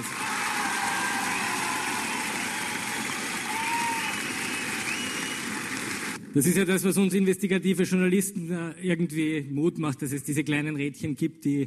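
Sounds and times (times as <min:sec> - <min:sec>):
audience applause in a hall: 0:00.0 - 0:06.2
speech: 0:06.3 - 0:11.6.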